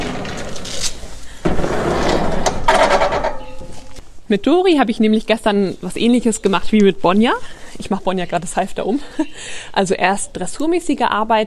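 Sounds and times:
door opening or closing: 0.0s - 3.9s
speech: 4.3s - 11.4s.

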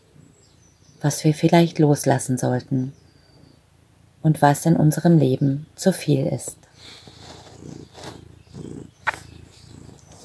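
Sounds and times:
speech: 1.0s - 3.0s, 4.2s - 7.0s
cat purring: 6.5s - 10.2s.

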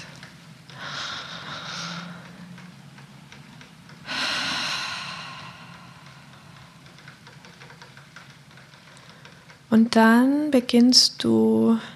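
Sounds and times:
audible breathing during relaxation exercise: 0.7s - 2.6s, 4.0s - 7.0s
speech: 9.7s - 11.9s.

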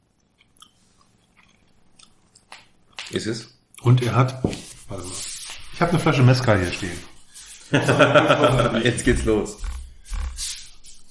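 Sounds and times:
person chewing young vegetables while tasting: 0.3s - 2.7s, 8.4s - 11.0s
speech: 3.1s - 7.1s, 7.7s - 9.7s
laughter: 7.6s - 9.5s.

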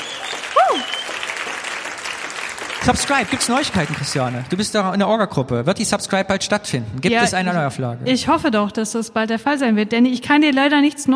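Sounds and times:
rising-and-falling whistle or whoop: 0.0s - 1.3s
applause: 0.0s - 4.9s
speech: 2.9s - 11.1s.

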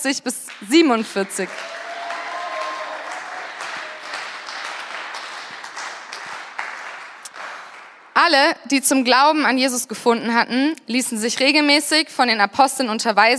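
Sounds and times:
speech: 0.0s - 1.8s, 8.2s - 13.3s
audience applause: 0.5s - 8.1s.

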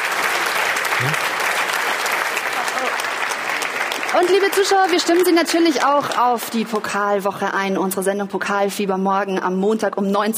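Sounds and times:
audience applause: 0.0s - 6.2s
speech: 1.0s - 1.4s, 4.1s - 10.3s.

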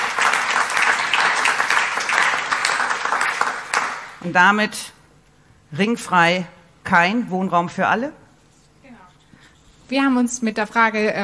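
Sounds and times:
audience applause welcoming guests at a talk event: 0.0s - 4.2s
speech: 4.2s - 5.0s, 5.7s - 8.2s, 9.9s - 11.2s.

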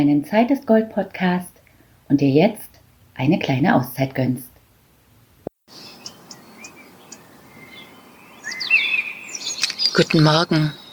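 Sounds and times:
speech: 0.0s - 4.5s, 10.0s - 10.8s
birds singing outdoors in the morning: 5.7s - 10.9s.

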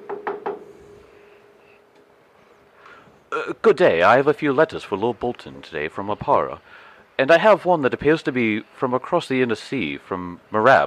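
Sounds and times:
knocking on a wooden door: 0.0s - 0.6s
speech: 3.4s - 10.8s.

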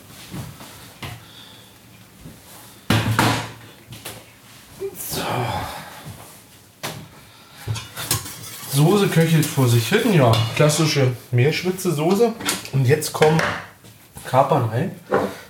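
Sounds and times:
pot clattering: 7.7s - 10.6s
draining boiled potatoes: 7.7s - 11.0s
speech: 8.8s - 13.7s, 14.3s - 15.1s.

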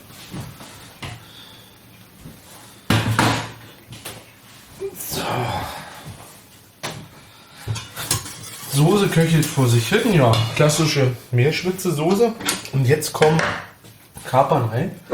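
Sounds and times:
speech: 5.0s - 5.8s, 8.8s - 13.7s, 14.3s - 15.1s
pot clattering while draining boiled potatoes: 7.8s - 10.8s.

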